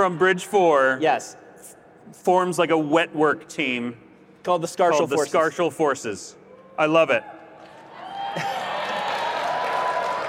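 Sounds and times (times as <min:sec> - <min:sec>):
speech: 0:00.0 - 0:07.4
crowd cheering and applauding: 0:07.6 - 0:10.2.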